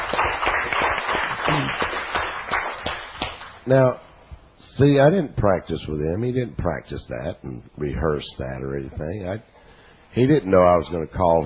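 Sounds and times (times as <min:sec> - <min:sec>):
crowd cheering: 0:00.0 - 0:02.7
audience clapping: 0:00.0 - 0:03.6
speech: 0:03.7 - 0:04.0, 0:04.7 - 0:09.5, 0:10.1 - 0:11.4.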